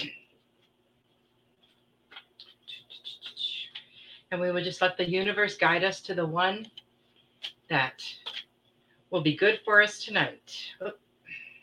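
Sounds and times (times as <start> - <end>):
shuffling a deck of cards: 1.6 - 3.9, 7.3 - 8.5
speech: 4.3 - 6.8, 7.7 - 8.2, 9.1 - 11.0.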